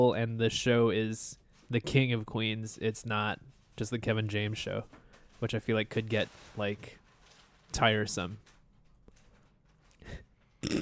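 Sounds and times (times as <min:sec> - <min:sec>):
speech: 0:00.0 - 0:07.0, 0:07.7 - 0:08.5, 0:10.0 - 0:10.8
cats fighting in crunchy pile of paper: 0:06.1 - 0:07.7.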